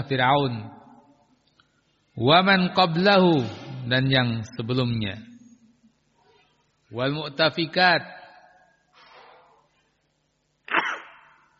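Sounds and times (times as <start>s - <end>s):
speech: 0.0s - 0.8s, 2.2s - 5.3s, 6.9s - 8.2s
sneeze: 9.0s - 9.7s, 10.7s - 11.5s.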